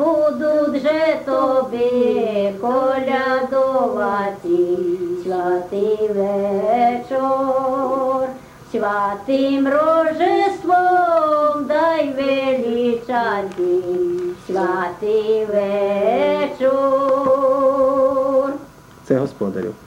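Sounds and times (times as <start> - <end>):
koliadka carol singing: 0.0 - 18.7.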